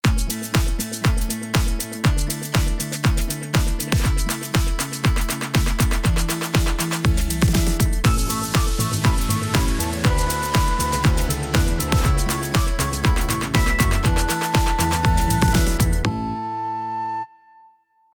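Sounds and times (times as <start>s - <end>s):
happy AI-generated music: 0.2s - 17.0s.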